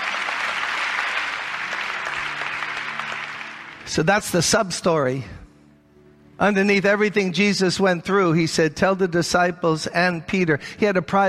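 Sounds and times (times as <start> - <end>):
audience clapping hands: 0.0 - 4.5
speech: 3.9 - 5.4, 6.4 - 11.2.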